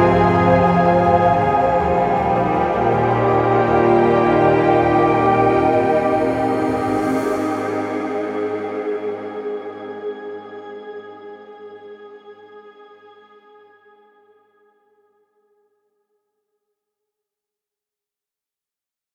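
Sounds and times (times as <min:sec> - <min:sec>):
dreamy ambient music: 0:00.0 - 0:14.0.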